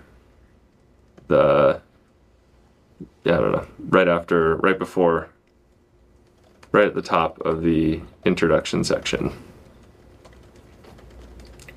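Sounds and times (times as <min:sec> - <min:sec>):
speech: 0:01.3 - 0:01.8, 0:03.3 - 0:05.4, 0:06.7 - 0:09.5
typing on a computer keyboard: 0:05.4 - 0:11.7.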